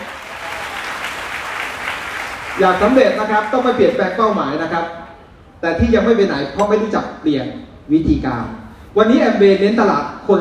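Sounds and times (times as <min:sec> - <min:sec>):
audience applause: 0:00.0 - 0:03.8
speech: 0:02.6 - 0:05.0, 0:05.6 - 0:10.4.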